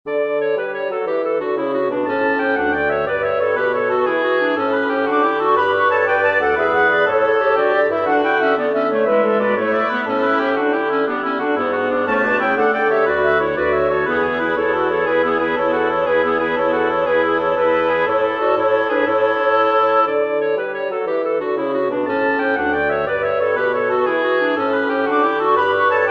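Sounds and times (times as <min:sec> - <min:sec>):
gigue played by woodwind quartet: 0:00.1 - 0:26.0.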